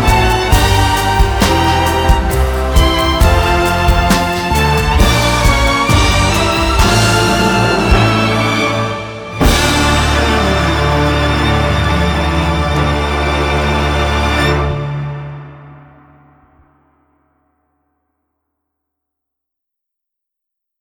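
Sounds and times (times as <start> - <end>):
violin music: 0.0 - 15.7.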